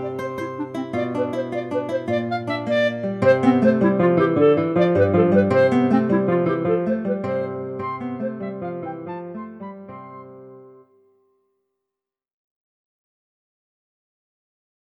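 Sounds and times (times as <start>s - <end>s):
clarinet: 0.0s - 11.0s.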